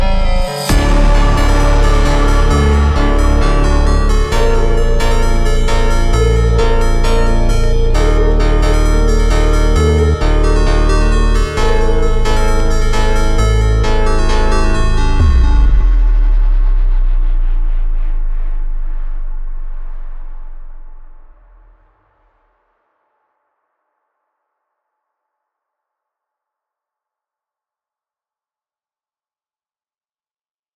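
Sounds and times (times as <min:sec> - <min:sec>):
super slowed music with reverb: 0:00.0 - 0:21.1.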